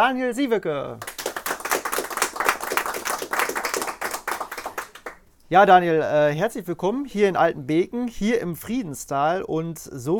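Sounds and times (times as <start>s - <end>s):
speech: 0.0s - 1.1s, 5.5s - 10.1s
audience applause: 1.0s - 5.2s.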